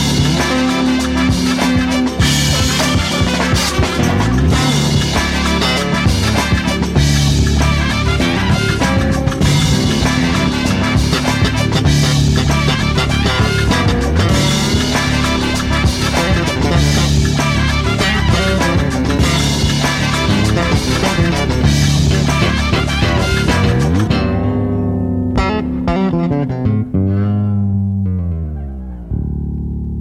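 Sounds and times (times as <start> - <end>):
instrumental music: 0.0 - 29.9.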